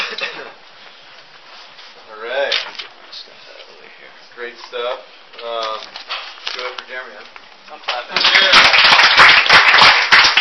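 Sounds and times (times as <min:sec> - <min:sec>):
clapping from a gathering: 0:08.1 - 0:10.4.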